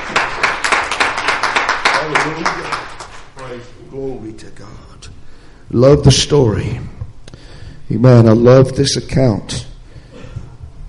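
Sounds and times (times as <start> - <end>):
audience clapping hands: 0.0 - 3.7
speech: 3.9 - 6.9, 7.9 - 9.7.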